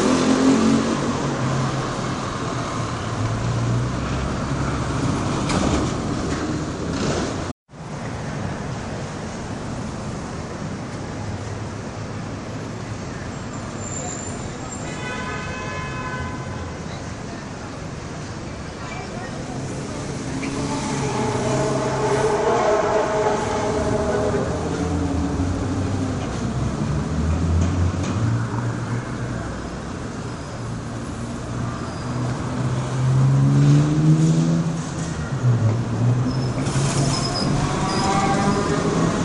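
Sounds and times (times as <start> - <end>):
passing traffic roar in a city: 0.0 - 39.2
tonal squeals: 19.8 - 25.8, 36.3 - 39.2.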